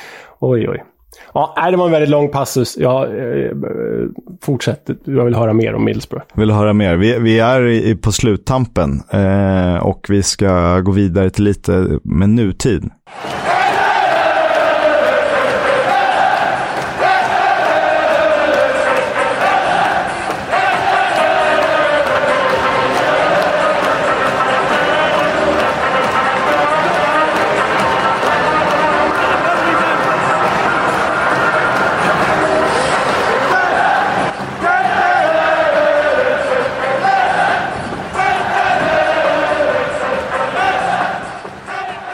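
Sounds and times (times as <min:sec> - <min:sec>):
speech: 0:00.4 - 0:13.5
football supporters' chant: 0:13.1 - 0:42.1.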